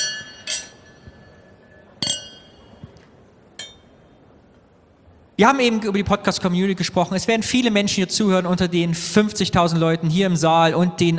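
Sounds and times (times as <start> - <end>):
champagne glasses clinking in a toast: 0.0 - 4.4
speech: 5.4 - 11.1.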